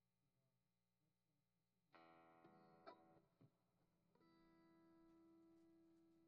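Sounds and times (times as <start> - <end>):
guitar: 1.9 - 6.2.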